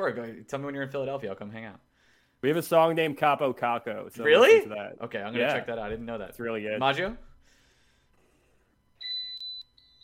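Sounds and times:
speech: 0.0s - 7.3s
microwave beeping: 8.9s - 10.0s.

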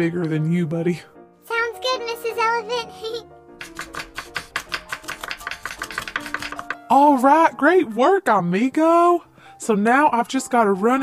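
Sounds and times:
speech: 0.0s - 1.1s, 1.9s - 3.4s, 6.9s - 11.0s
chopping vegetables on cutting board: 3.6s - 6.8s.

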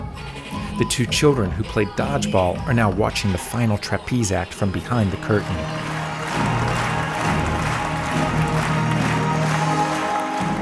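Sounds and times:
speech: 0.8s - 5.9s
rapturous audience applause: 5.4s - 10.6s.

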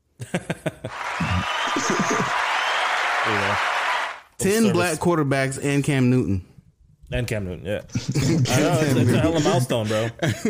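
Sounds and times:
speech: 0.2s - 1.0s, 4.4s - 6.5s, 7.1s - 10.4s
laughter: 0.2s - 2.6s, 7.9s - 10.4s
clapping sound effect: 0.9s - 4.2s.

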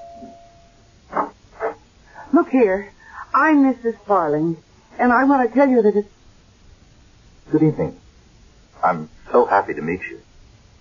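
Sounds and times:
doorbell ringing: 0.0s - 0.9s
speech: 2.4s - 6.2s, 7.5s - 8.0s, 8.8s - 10.3s.

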